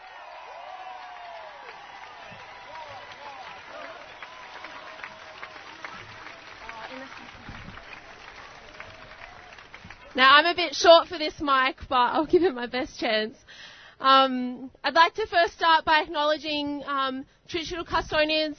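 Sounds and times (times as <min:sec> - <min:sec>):
crowd applause: 0:00.0 - 0:10.6
speech: 0:10.2 - 0:18.5.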